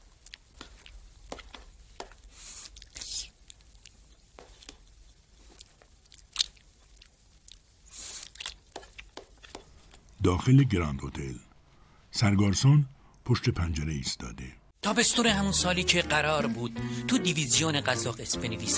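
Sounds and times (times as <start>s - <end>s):
crisp bites and crunchy chewing while eating lunch: 0.0s - 10.2s
speech: 10.3s - 11.5s, 12.2s - 18.7s.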